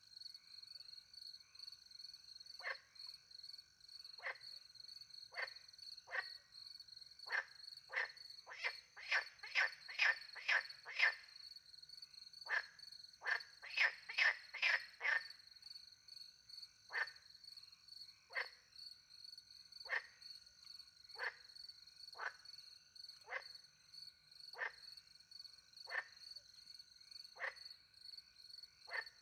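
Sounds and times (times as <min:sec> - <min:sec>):
frog croaking: 0:02.5 - 0:02.9, 0:04.2 - 0:04.6, 0:05.3 - 0:06.4, 0:07.2 - 0:11.4, 0:12.4 - 0:15.4, 0:16.8 - 0:17.3, 0:18.3 - 0:18.6, 0:19.8 - 0:20.4, 0:21.1 - 0:21.5, 0:22.1 - 0:22.5, 0:23.2 - 0:23.7, 0:24.5 - 0:25.0, 0:25.8 - 0:26.4, 0:27.3 - 0:27.8, 0:28.8 - 0:29.2.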